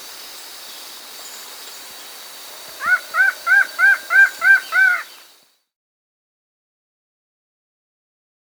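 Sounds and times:
upland antshrike calling nasal arched notes in South America: 0.8s - 5.4s.

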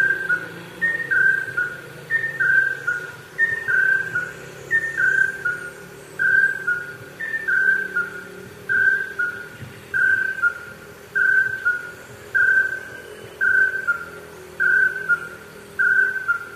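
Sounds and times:
Chestnut-headed Crake calling in South America: 0.0s - 16.5s.

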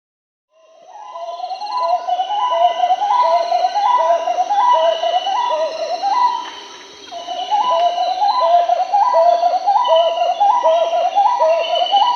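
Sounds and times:
marbled wood-quail Odontophorus gujanensis singing in Peru: 1.6s - 12.1s.

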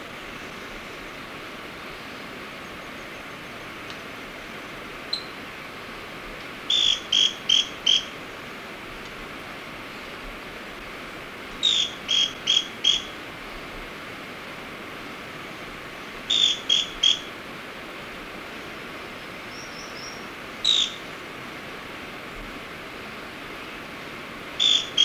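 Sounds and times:
Scale-crested Pygmy-Tyrant calling in South America: 6.7s - 8.2s, 11.6s - 13.2s, 16.3s - 17.3s, 19.6s - 21.1s, 24.6s - 25.0s.

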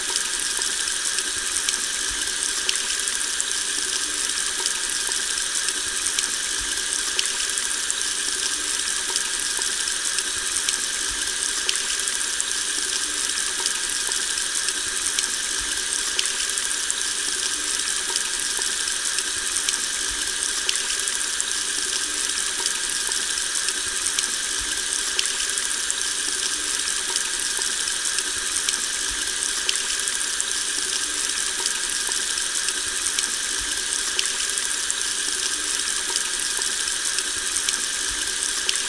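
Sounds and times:
rain: 0.0s - 38.8s.

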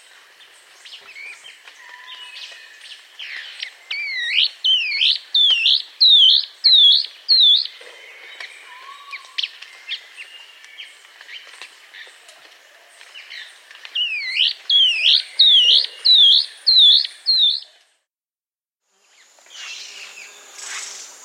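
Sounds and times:
Long-winged antwren song in South America: 3.3s - 7.8s, 14.0s - 17.8s.

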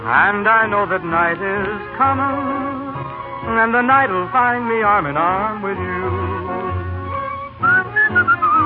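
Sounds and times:
speech: 0.1s - 2.9s, 3.5s - 6.3s
person whistling a tune: 7.6s - 8.6s.

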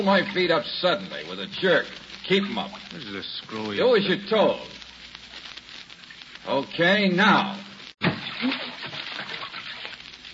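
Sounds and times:
speech: 0.0s - 4.8s, 6.4s - 7.7s
water splashing in a bathtub: 8.0s - 10.3s.

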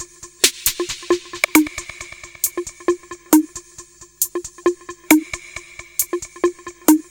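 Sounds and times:
techno drums: 0.0s - 7.0s.

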